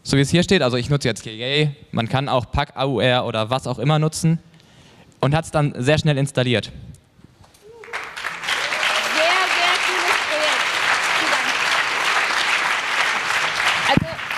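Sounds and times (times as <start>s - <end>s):
speech: 0.1s - 4.5s, 5.2s - 6.9s
faint voices and cheers: 7.6s - 10.5s
audience applauding enthusiastically: 7.7s - 14.3s.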